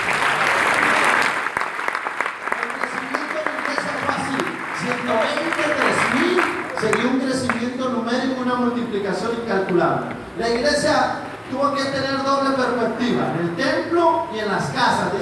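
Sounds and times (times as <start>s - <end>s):
audience applause: 0.0s - 7.7s
speech: 8.6s - 15.2s.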